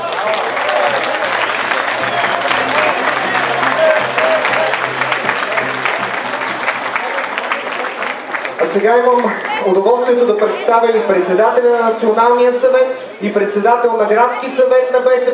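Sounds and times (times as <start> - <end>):
crowd applauding at a BSP political rally in Sofia: 0.0 - 10.8
speech: 8.7 - 15.3.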